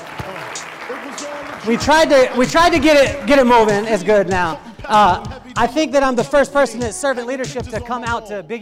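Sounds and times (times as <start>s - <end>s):
audience applause: 0.0s - 4.4s
speech: 1.0s - 8.5s.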